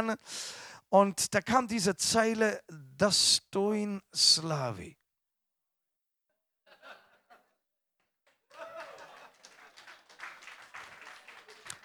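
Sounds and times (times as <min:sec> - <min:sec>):
speech: 0:00.0 - 0:05.0
audience laughter: 0:06.7 - 0:07.6, 0:08.5 - 0:10.0
audience applause: 0:08.5 - 0:11.8.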